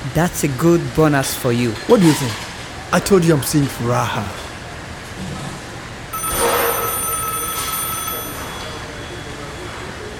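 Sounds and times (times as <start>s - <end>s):
speech: 0.2s - 4.4s
telephone ringing: 6.1s - 9.7s.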